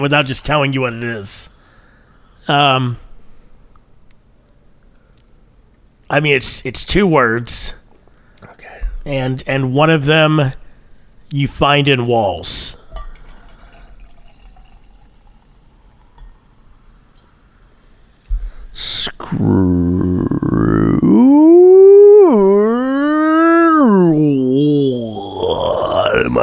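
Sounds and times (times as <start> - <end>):
speech: 0.0 - 1.6, 2.5 - 3.0, 6.1 - 7.8, 9.0 - 10.6, 11.3 - 12.8, 18.8 - 22.9, 26.1 - 26.4
person yawning: 18.8 - 26.4.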